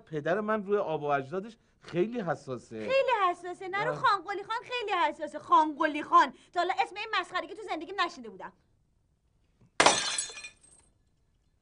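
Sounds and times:
speech: 0:00.1 - 0:08.7
glass or ceramic vase smashing: 0:09.8 - 0:10.9.

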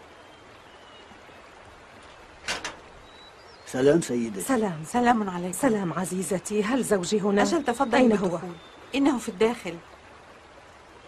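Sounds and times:
faint hiss: 0:00.0 - 0:11.0
door being opened: 0:02.4 - 0:02.9
speech: 0:03.7 - 0:09.9.

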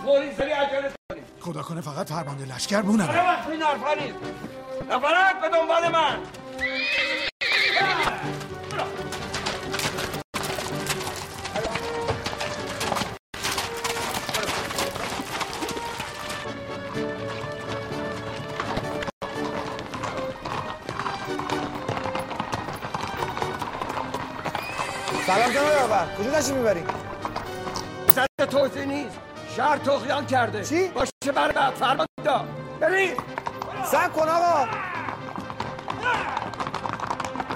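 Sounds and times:
speech: 0:00.0 - 0:08.2, 0:26.0 - 0:27.0, 0:28.2 - 0:34.9, 0:36.0 - 0:36.4
horses galloping: 0:05.8 - 0:28.2, 0:32.9 - 0:37.5
horses neighing: 0:06.5 - 0:16.4, 0:18.2 - 0:27.4, 0:33.4 - 0:37.5.

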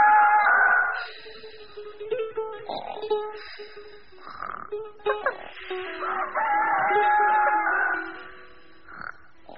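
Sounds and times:
rooster crowing in the early morning: 0:00.0 - 0:01.0, 0:05.8 - 0:08.3.

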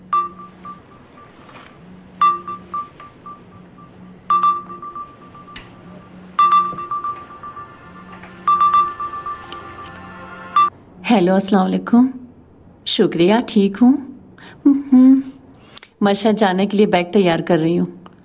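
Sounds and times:
phone ringing tone on a call: 0:00.0 - 0:01.6, 0:02.2 - 0:10.7
speech: 0:11.1 - 0:12.2, 0:12.8 - 0:15.3, 0:16.0 - 0:18.0.

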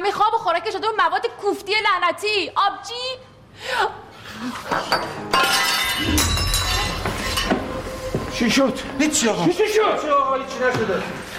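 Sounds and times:
speech: 0:00.1 - 0:06.8, 0:08.4 - 0:11.3
glass knocked over and shattering: 0:05.3 - 0:07.8
glass shards tinkling: 0:05.4 - 0:07.5.

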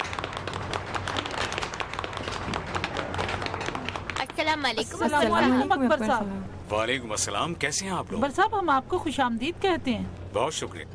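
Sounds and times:
audience applause: 0:00.0 - 0:04.4
speech: 0:04.4 - 0:10.9.

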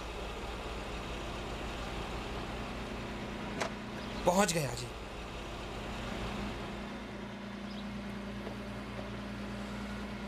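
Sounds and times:
car engine drone as the vehicle drives across: 0:00.0 - 0:10.2
speech: 0:04.2 - 0:05.0.

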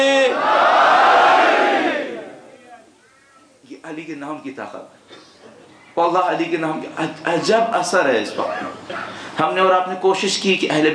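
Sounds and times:
crowd shouting in unison at a religious gathering: 0:00.3 - 0:02.6
speech: 0:03.9 - 0:05.2, 0:06.0 - 0:10.9.

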